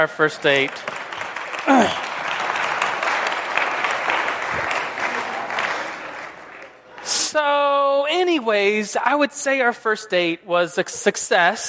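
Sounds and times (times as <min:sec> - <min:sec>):
speech: 0:00.0 - 0:01.0, 0:01.6 - 0:02.1, 0:07.4 - 0:11.6
audience round of applause: 0:00.0 - 0:07.0.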